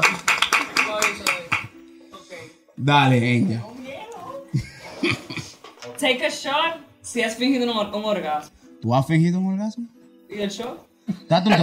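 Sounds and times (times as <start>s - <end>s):
audience applause: 0.0s - 1.7s
speech: 2.8s - 3.7s, 4.5s - 5.4s, 6.0s - 11.6s
laughter: 4.5s - 5.6s.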